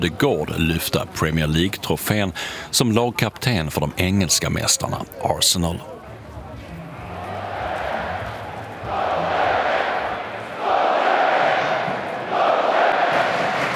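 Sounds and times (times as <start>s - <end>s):
speech: 0.0s - 6.0s
football supporters chanting in stadium: 7.2s - 13.7s.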